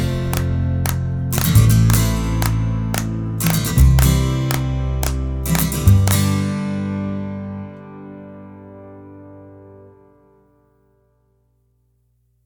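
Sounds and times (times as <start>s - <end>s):
jig music: 0.3s - 6.3s.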